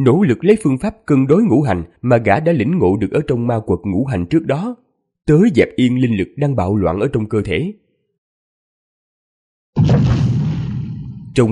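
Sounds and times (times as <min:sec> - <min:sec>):
speech: 0:00.0 - 0:07.8, 0:09.8 - 0:10.1
loud rumbling explosions underground: 0:09.8 - 0:11.4.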